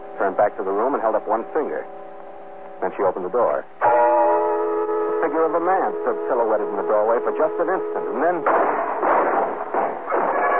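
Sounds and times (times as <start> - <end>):
speech: 0.3 - 2.0, 2.8 - 4.0, 5.2 - 8.8
gunfire from many guns at once: 8.4 - 10.5.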